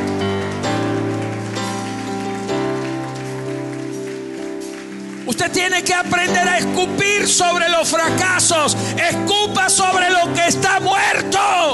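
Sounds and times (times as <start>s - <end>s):
audience applauding: 0.0s - 10.2s
speech: 5.4s - 11.7s.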